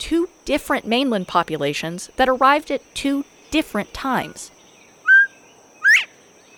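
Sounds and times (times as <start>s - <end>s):
speech: 0.0s - 4.6s
quiet hiss: 0.0s - 6.5s
Northern Bobwhite call: 5.1s - 6.1s.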